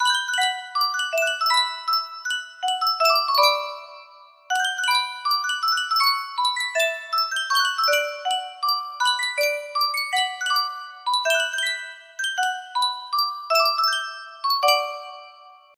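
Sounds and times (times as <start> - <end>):
Sankyo music box: 0.0 - 15.7.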